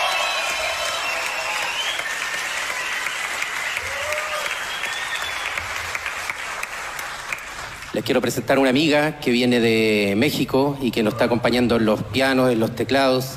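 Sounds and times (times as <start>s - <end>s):
audience applause from a large crowd: 0.0s - 7.9s
speech: 8.0s - 13.3s.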